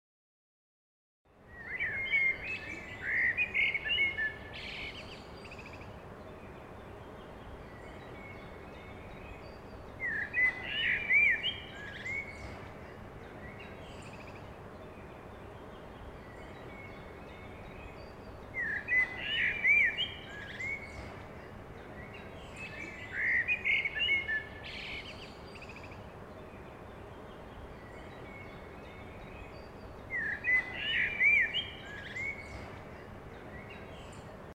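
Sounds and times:
city park ambience in very early morning: 1.3 - 34.5.

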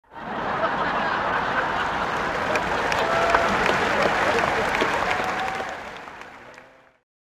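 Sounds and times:
laughter: 0.1 - 5.0
applause: 0.5 - 7.0.

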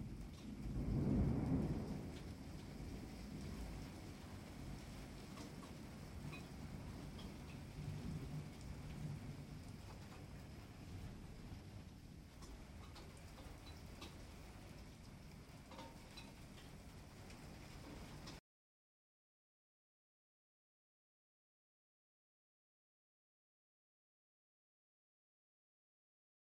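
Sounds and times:
calm rain outside the house window: 0.0 - 18.4
thunder rolling: 0.0 - 18.4.

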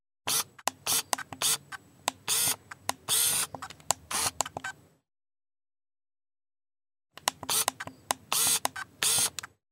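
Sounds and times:
automatic camera zooming: 0.3 - 4.8, 7.2 - 9.6.

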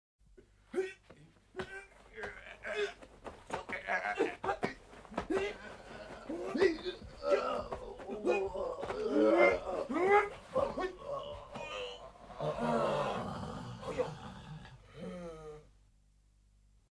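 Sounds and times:
karate killing and choking fight sounds: 0.4 - 13.1.

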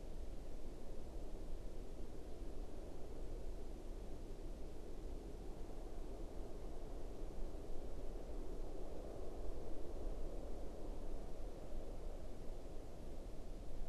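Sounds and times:
quiet winter forest ambience: 0.0 - 13.8.

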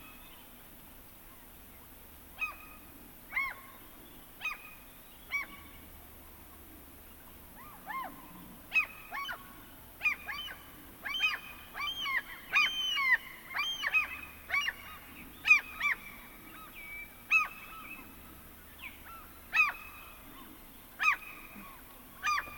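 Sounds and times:
seagull: 2.4 - 3.8, 5.3 - 5.7, 7.6 - 16.7, 17.3 - 18.0, 19.0 - 22.5.

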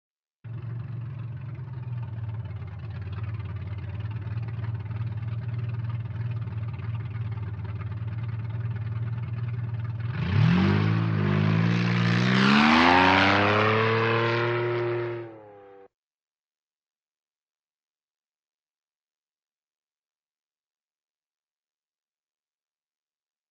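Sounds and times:
buggy engine running while standing, then driving off: 0.4 - 15.9.

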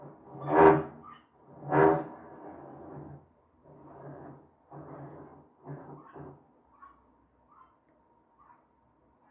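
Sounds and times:
renovation noise in the neighbouring apartment: 0.0 - 6.8.

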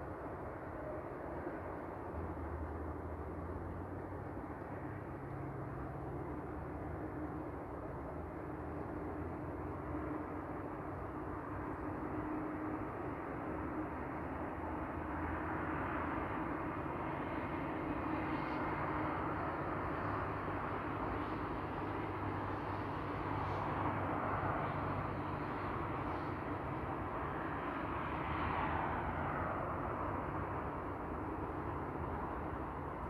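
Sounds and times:
cars in a city at night: 0.0 - 33.0.

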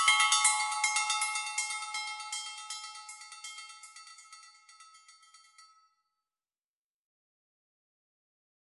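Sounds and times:
small bells chiming in Bali: 0.0 - 6.1.

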